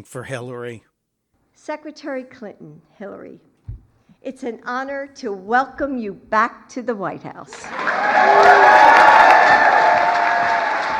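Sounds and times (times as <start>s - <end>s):
speech: 0.0s - 0.9s, 1.6s - 3.5s, 4.2s - 9.7s
applause in a big room in the White House: 7.6s - 10.9s.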